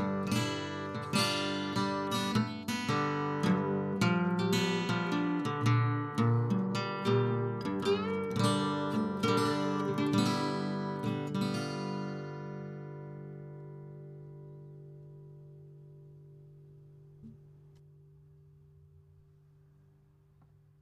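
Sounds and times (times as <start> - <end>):
slide guitar: 0.0 - 15.6.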